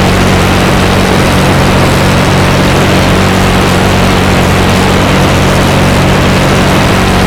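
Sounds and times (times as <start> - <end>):
Jumo 213A aircraft engines: 0.0 - 7.2.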